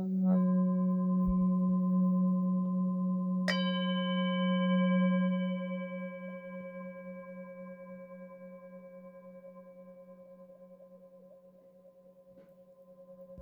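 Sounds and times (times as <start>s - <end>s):
low seven-metal Tibetan singing bowl struck on note F: 0.0s - 8.1s.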